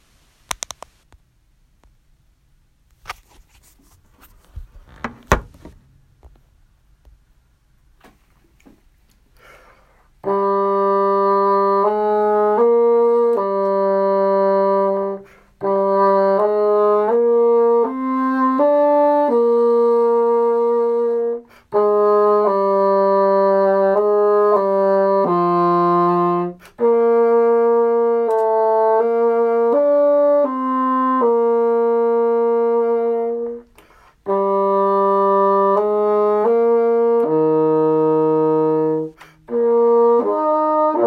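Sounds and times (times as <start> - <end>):
bassoon: 10.2 - 41.0.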